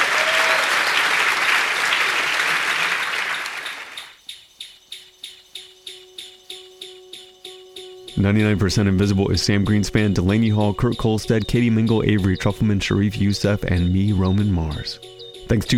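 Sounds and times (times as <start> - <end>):
audience applause welcoming a guest at a live event: 0.0 - 4.1
music with a steady pulsing beat and a sustained tone: 4.1 - 15.7
speech: 8.2 - 15.7.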